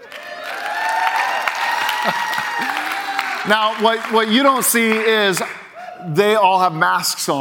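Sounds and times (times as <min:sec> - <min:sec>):
live crowd applause: 0:00.0 - 0:05.8
live crowd cheering with whoops and shouts: 0:00.0 - 0:06.6
speech: 0:02.0 - 0:02.3, 0:03.4 - 0:07.4.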